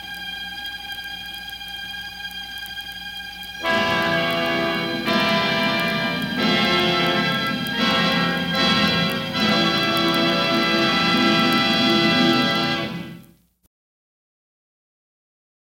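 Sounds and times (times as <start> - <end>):
comical music: 3.6 - 13.3.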